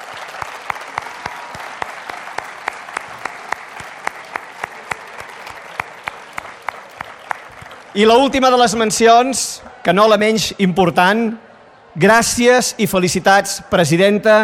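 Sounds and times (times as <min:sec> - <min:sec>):
audience applause: 0:00.0 - 0:10.5
speech: 0:07.9 - 0:11.4, 0:12.0 - 0:14.4.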